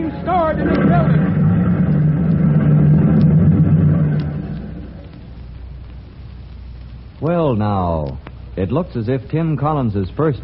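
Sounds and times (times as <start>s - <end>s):
generator engine running: 0.0s - 5.5s
speech: 7.5s - 10.4s.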